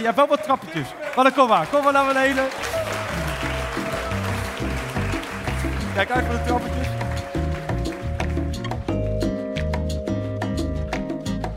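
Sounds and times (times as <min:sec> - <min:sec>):
speech: 0:00.0 - 0:02.8, 0:06.0 - 0:06.9
audience applause: 0:00.0 - 0:08.8
loud music with a stepping bass line and sustained tones: 0:03.1 - 0:11.5.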